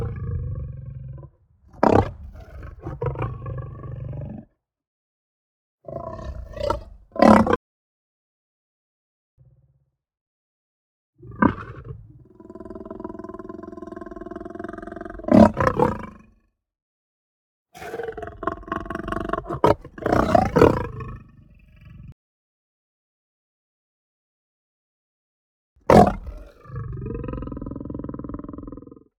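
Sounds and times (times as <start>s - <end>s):
lion growling and snarling: 0.0s - 4.5s, 5.8s - 7.6s, 11.2s - 16.4s, 17.8s - 22.1s, 25.9s - 29.1s.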